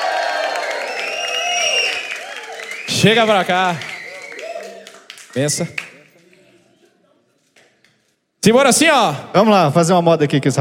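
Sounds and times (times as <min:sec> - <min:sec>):
crowd cheering at a live music show: 0:00.0 - 0:06.1
speech: 0:02.9 - 0:03.9, 0:05.3 - 0:05.8, 0:08.4 - 0:10.6.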